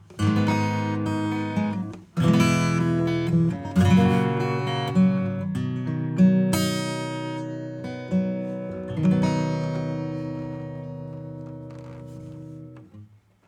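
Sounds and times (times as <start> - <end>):
acoustic music: 0.0 - 13.2.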